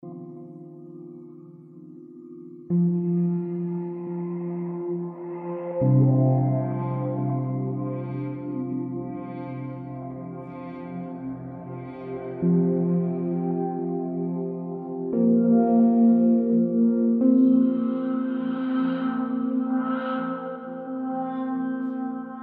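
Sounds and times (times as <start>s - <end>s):
synthesizer: 0.0s - 22.4s.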